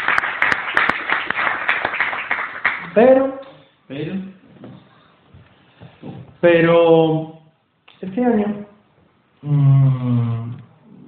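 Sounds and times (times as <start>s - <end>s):
applause for an award winner at a gala: 0.0s - 2.9s
speech: 3.0s - 4.4s, 6.4s - 7.3s, 8.0s - 8.6s, 9.4s - 10.5s.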